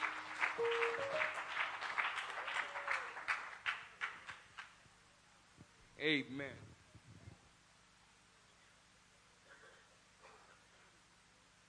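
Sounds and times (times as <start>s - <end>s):
crowd clapping hands: 0.0s - 4.8s
speech: 6.0s - 6.7s.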